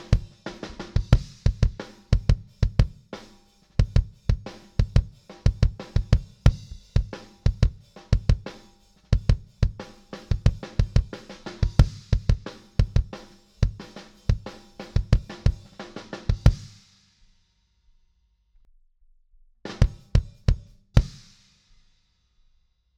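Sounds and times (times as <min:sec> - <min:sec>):
kick drum: 0:00.0 - 0:03.0, 0:03.8 - 0:08.5, 0:09.1 - 0:15.7, 0:16.3 - 0:16.8, 0:19.7 - 0:21.3.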